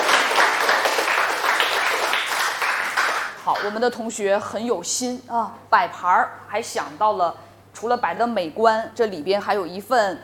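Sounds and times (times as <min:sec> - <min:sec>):
applause: 0:00.0 - 0:03.7
speech: 0:03.6 - 0:10.2.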